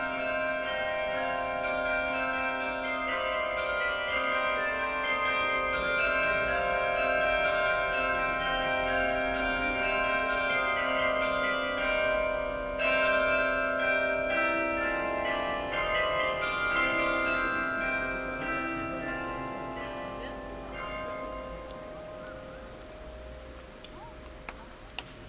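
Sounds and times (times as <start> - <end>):
carillon concert: 0.0 - 23.6.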